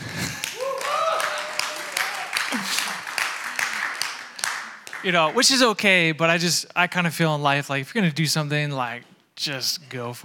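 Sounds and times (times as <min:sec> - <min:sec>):
weak clapping: 0:00.0 - 0:05.4
speech: 0:05.0 - 0:10.2.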